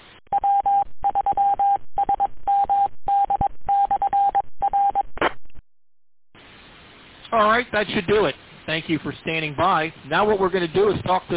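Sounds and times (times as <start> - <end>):
DTMF touch-tone beeps over a radio channel resetting repeaters: 0.3 - 5.1
speech: 7.4 - 11.3.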